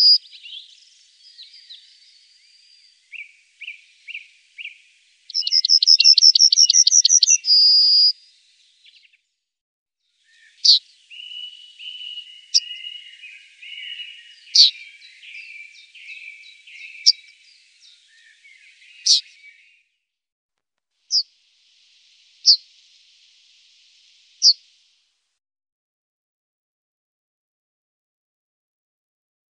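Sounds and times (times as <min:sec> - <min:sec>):
yellowhammer song: 0:00.0 - 0:09.4, 0:10.0 - 0:20.1, 0:21.1 - 0:24.9.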